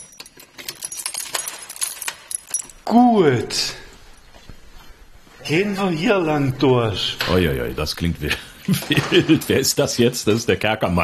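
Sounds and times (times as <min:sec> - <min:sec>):
keys rattling in a lock unlocking a door: 0:00.0 - 0:02.9
speech: 0:02.9 - 0:03.8, 0:05.5 - 0:11.0
laughter: 0:08.2 - 0:09.7.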